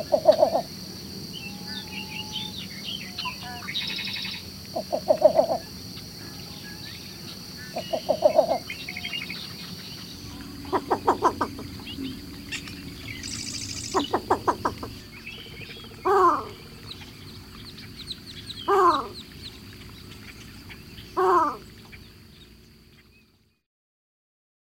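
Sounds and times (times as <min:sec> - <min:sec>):
American bittern calling: 0:00.0 - 0:00.7, 0:01.3 - 0:23.2.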